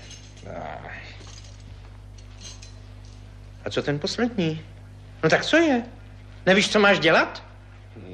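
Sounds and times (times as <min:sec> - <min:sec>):
keys jingling as they are handed over: 0:00.0 - 0:00.6, 0:01.2 - 0:03.3
low hum: 0:00.0 - 0:08.1
speech: 0:03.6 - 0:08.1.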